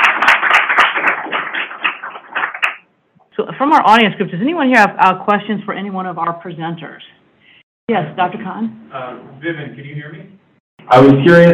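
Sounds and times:
audience clapping: 0.0s - 2.8s
speech: 3.6s - 7.2s, 7.9s - 11.5s.

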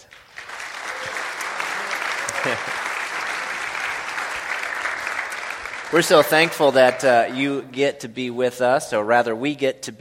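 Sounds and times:
church congregation clapping to welcome a missionary to the Philippines: 0.0s - 7.7s
speech: 2.4s - 2.8s, 5.9s - 9.9s.

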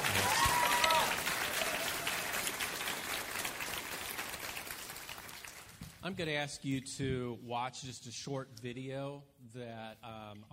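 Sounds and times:
audience applause: 0.0s - 5.8s
speech: 6.0s - 10.5s.

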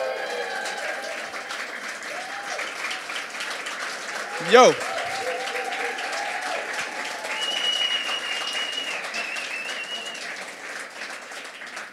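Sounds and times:
whoops and tonal cries: 0.0s - 1.2s, 2.1s - 2.7s, 4.3s - 9.9s
audience applause: 0.0s - 11.9s
speech: 4.4s - 4.9s.

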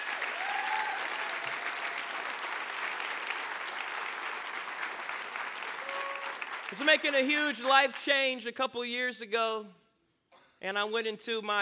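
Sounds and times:
audience clapping: 0.0s - 8.2s
faint voices and whoops: 0.3s - 2.3s, 5.7s - 6.5s
speech: 6.7s - 9.8s, 10.6s - 11.6s.

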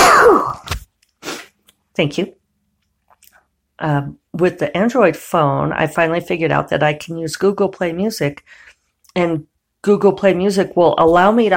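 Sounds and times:
person sneezing: 0.0s - 1.6s
speech: 2.0s - 2.4s, 3.8s - 11.5s.

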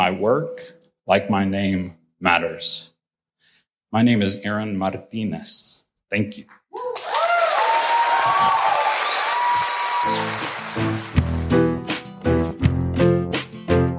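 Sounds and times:
speech: 0.0s - 2.9s, 3.9s - 7.0s, 8.2s - 8.8s, 10.0s - 11.7s
crowd applauding: 7.0s - 11.6s
whistles: 8.9s - 10.4s
music with strong beats: 10.7s - 13.9s.

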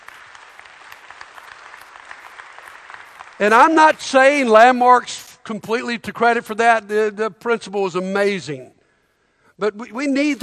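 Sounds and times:
audience clapping: 0.0s - 4.6s
speech: 3.4s - 8.8s, 9.6s - 10.4s.

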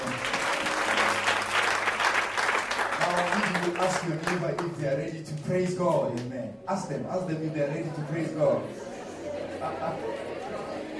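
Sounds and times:
church congregation clapping after a prayer: 0.0s - 6.3s
speech: 3.8s - 8.9s, 9.6s - 10.8s
laughter: 7.1s - 10.9s.

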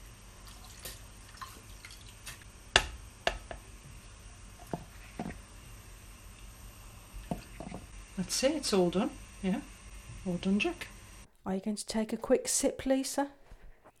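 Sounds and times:
gin being poured into a drink: 0.4s - 2.4s
speech: 8.2s - 9.7s, 10.3s - 13.4s.

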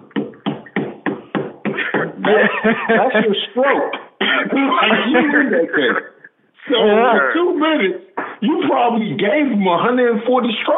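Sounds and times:
hands clapping: 0.0s - 1.8s
laughter: 1.7s - 6.3s
speech: 1.8s - 6.1s, 6.7s - 10.7s.

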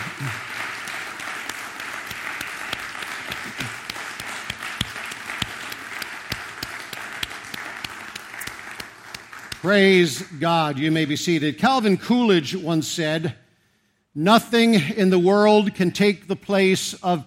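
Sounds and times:
audience clapping hands: 0.0s - 11.1s
speech: 9.6s - 13.4s, 14.2s - 17.2s.

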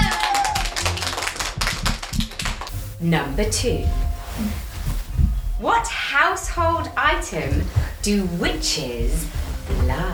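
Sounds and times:
small group clapping: 0.0s - 2.7s
speech: 3.0s - 4.6s, 5.6s - 10.1s.

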